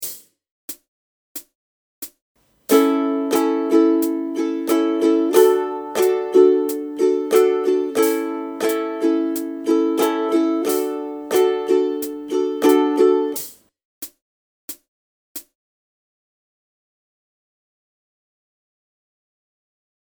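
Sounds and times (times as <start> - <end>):
ukulele strumming: 2.7 - 13.5.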